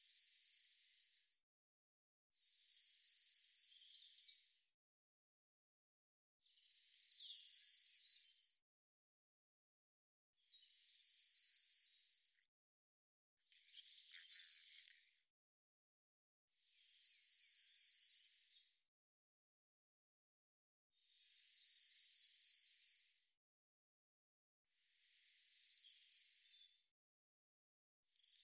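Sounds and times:
bird singing sharp descending chirps: 0:00.0 - 0:01.3, 0:02.4 - 0:04.5, 0:06.8 - 0:08.5, 0:10.5 - 0:12.4, 0:13.5 - 0:14.9, 0:16.7 - 0:18.3, 0:21.2 - 0:23.2, 0:25.1 - 0:26.7, 0:28.1 - 0:28.4.

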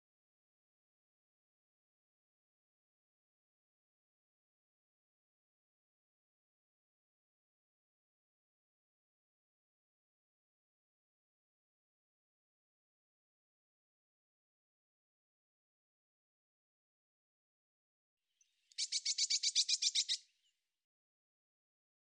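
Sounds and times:
Eurasian blue tit scolding with rasping buzzy notes: 0:18.7 - 0:20.2.

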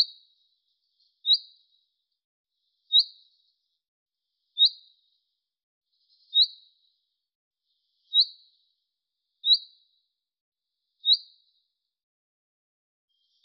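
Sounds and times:
bird giving short high chirps: 0:00.0 - 0:01.8, 0:02.9 - 0:03.5, 0:04.6 - 0:05.1, 0:06.0 - 0:07.0, 0:07.9 - 0:08.6, 0:09.4 - 0:10.0, 0:11.0 - 0:11.6.

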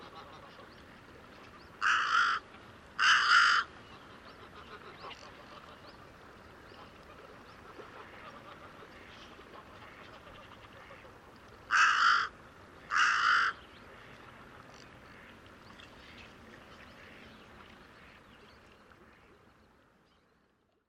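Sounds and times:
bird cawing: 0:01.8 - 0:02.4, 0:03.0 - 0:03.7, 0:11.7 - 0:12.3, 0:12.9 - 0:13.6.

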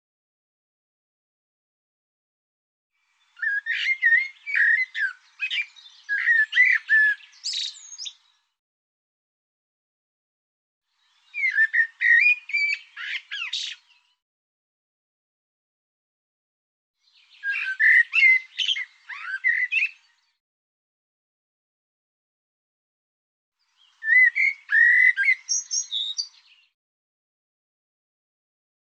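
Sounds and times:
bird song: 0:03.0 - 0:08.6, 0:10.9 - 0:14.2, 0:17.0 - 0:20.4, 0:23.6 - 0:26.8.

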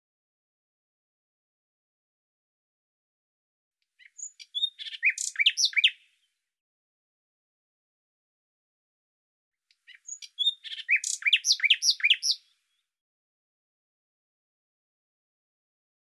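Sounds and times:
bird song: 0:03.8 - 0:06.6, 0:09.7 - 0:13.0.

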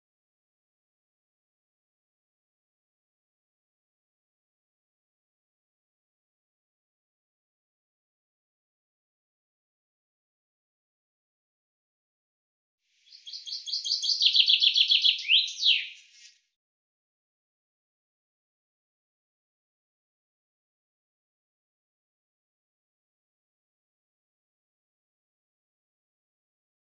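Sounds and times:
common chaffinch singing: 0:13.0 - 0:16.3.

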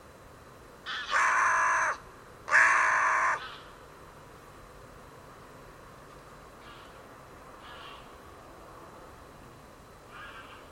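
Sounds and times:
bird harsh caw: 0:00.9 - 0:03.8, 0:06.6 - 0:07.0, 0:07.6 - 0:08.2, 0:10.1 - 0:10.6.

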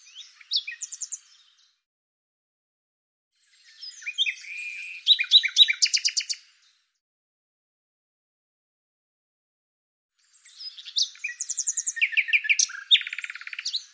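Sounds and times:
bird song with scratchy notes and a run of high sharp notes: 0:00.0 - 0:01.9, 0:03.4 - 0:07.0, 0:10.1 - 0:13.9.

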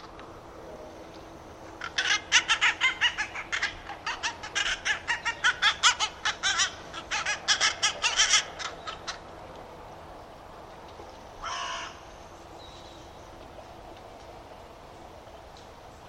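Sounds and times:
steady low background hiss: 0:00.0 - 0:16.0
bird rapid clucking calls: 0:01.7 - 0:09.4.

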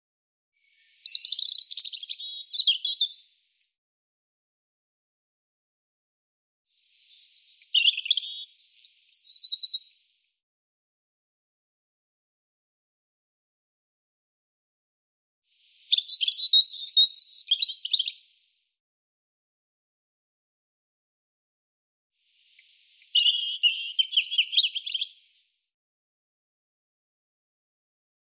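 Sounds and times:
European robin singing: 0:00.6 - 0:03.4, 0:06.9 - 0:10.0, 0:15.6 - 0:18.4, 0:22.4 - 0:25.3.

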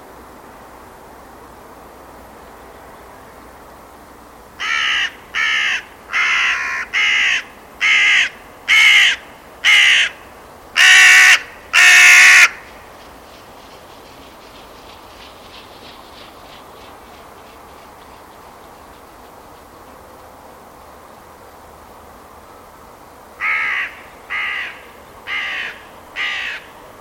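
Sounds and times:
bird giving harsh crow-like caws: 0:04.6 - 0:12.7, 0:23.4 - 0:26.8.

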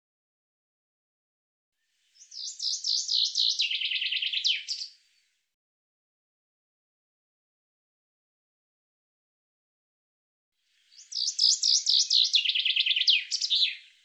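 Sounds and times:
bird trilling song: 0:02.1 - 0:05.0, 0:10.8 - 0:14.0.

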